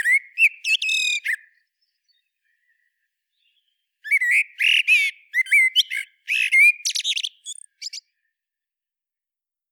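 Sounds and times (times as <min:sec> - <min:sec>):
common blackbird singing: 0:00.0 - 0:08.2.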